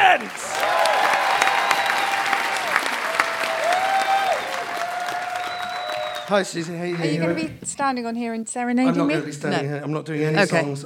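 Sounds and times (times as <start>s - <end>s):
audience applause: 0.0s - 7.0s
speech: 0.2s - 0.8s, 6.3s - 10.8s.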